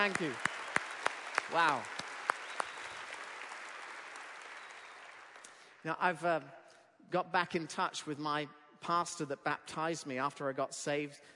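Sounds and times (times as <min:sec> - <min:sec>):
speech: 0:00.0 - 0:00.5, 0:01.5 - 0:02.0, 0:05.8 - 0:11.3
audience applause: 0:00.0 - 0:05.7
person whooping or cheering: 0:01.5 - 0:01.9.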